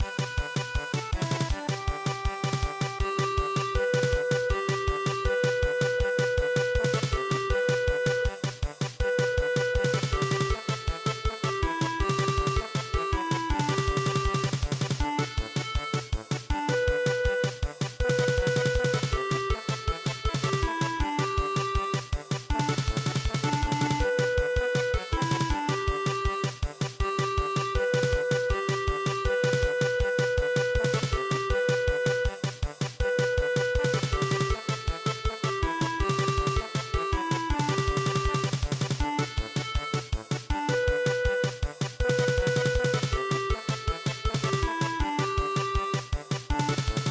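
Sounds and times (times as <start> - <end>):
German polka in MIDI: 0.1 - 47.0.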